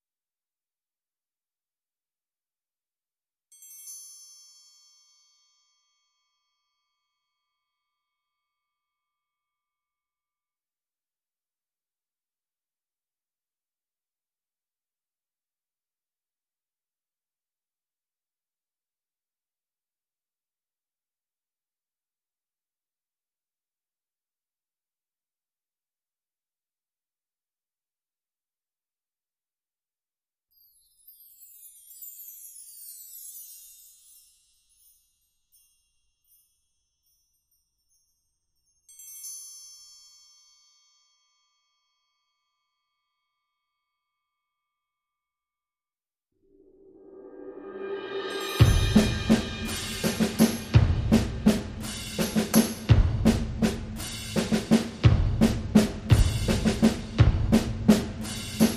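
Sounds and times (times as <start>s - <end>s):
rhythm track: 48.0s - 58.7s.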